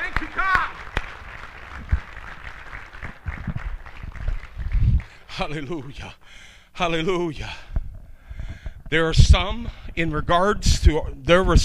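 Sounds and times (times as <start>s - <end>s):
audience clapping: 0.0s - 6.1s
speech: 5.4s - 7.7s, 8.9s - 11.6s.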